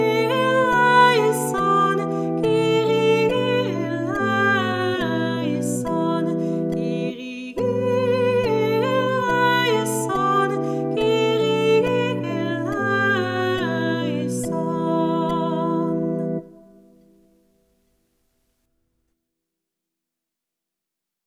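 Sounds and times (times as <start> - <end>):
soprano singing a Kyrie: 0.0 - 17.0.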